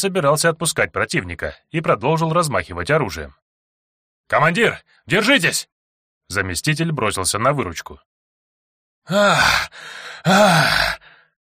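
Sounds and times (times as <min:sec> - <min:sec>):
speech: 0:00.0 - 0:03.4, 0:04.3 - 0:08.1, 0:09.0 - 0:11.1
low groaning voice of a wounded wolfman: 0:09.1 - 0:11.0
tired heavy breathing of a bleeding wounded wolfman: 0:09.1 - 0:11.4.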